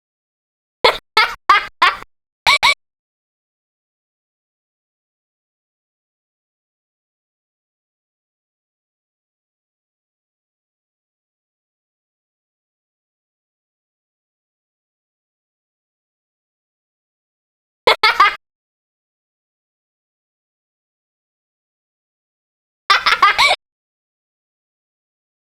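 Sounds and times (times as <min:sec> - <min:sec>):
person laughing: 0:00.9 - 0:02.8, 0:17.9 - 0:18.4, 0:22.9 - 0:23.6.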